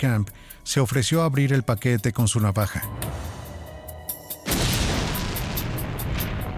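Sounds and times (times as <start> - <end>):
speech: 0.0 - 3.3
bomb explosion boom: 4.5 - 6.5.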